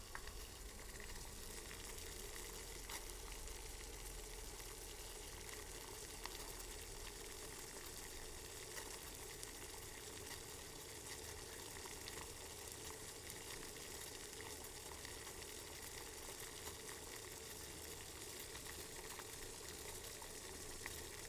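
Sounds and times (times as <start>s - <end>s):
water boiling in a small pot: 0.0s - 21.2s.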